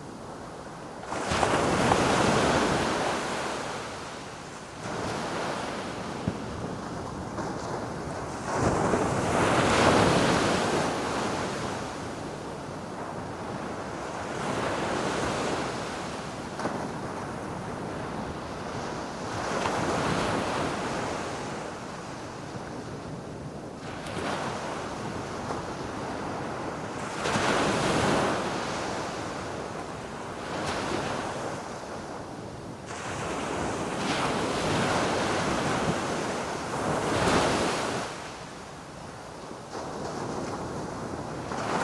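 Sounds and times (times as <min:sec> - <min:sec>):
ocean waves on a beach: 0:00.0 - 0:41.8.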